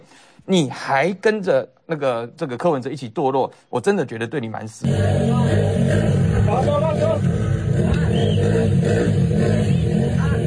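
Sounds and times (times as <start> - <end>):
speech: 0.5 - 7.3
several motorcycle and car engines revving at a school gate: 4.8 - 10.4.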